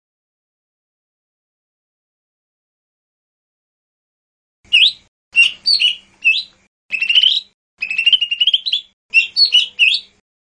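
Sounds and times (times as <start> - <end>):
bird chirping: 4.7 - 10.4.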